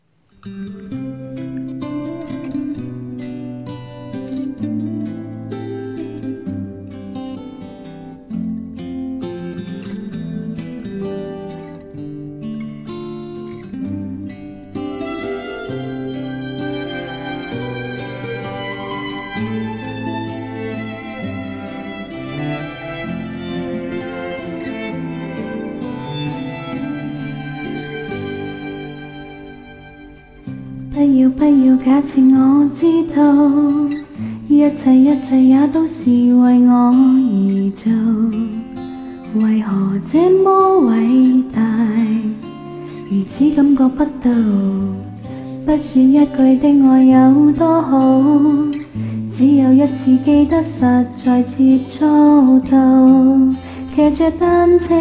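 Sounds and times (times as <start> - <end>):
person singing a cover song: 30.9 - 54.9.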